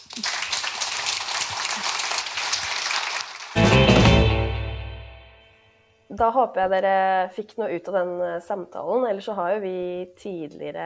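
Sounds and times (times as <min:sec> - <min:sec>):
audience applause: 0:00.0 - 0:04.6
loud music burst: 0:03.6 - 0:05.8
speech: 0:06.2 - 0:10.8.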